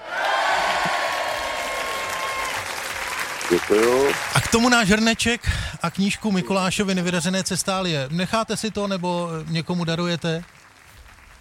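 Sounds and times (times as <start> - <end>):
applause: 0.0 - 5.4, 7.4 - 11.3
speech: 3.5 - 10.6.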